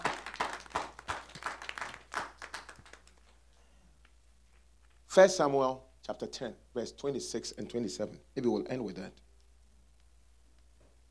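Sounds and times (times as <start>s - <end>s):
audience clapping: 0.0s - 3.4s
speech: 5.2s - 9.2s.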